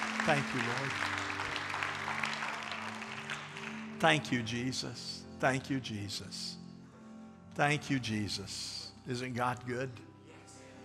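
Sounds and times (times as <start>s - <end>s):
audience clapping: 0.0s - 4.5s
speech: 0.2s - 1.2s, 4.0s - 6.6s, 7.6s - 10.1s.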